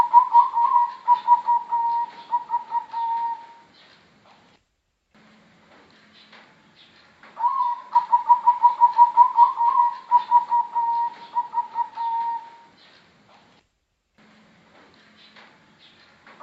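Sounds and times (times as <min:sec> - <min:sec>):
Bangkok type zebra dove singing quick evenly pulsed coos: 0:00.0 - 0:03.7, 0:07.4 - 0:12.8.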